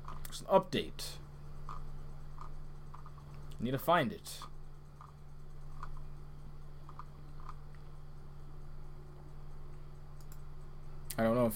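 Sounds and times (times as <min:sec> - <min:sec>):
constant low hum: 0:00.0 - 0:11.5
speech: 0:00.4 - 0:01.2, 0:03.6 - 0:04.5, 0:11.2 - 0:11.5
faint computer mouse clicks: 0:01.6 - 0:03.6, 0:04.4 - 0:06.1, 0:06.8 - 0:07.9, 0:09.9 - 0:11.2.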